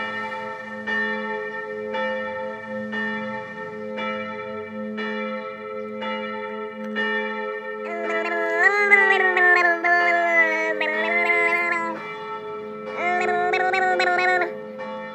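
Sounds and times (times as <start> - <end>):
7 pm church bells ringing: 0.0 - 15.1
person commenting: 7.8 - 12.0, 13.0 - 14.5.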